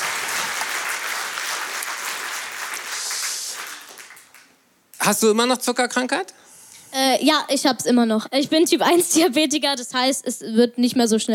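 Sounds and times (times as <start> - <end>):
audience applause: 0.0 - 4.6
speech: 5.1 - 11.3.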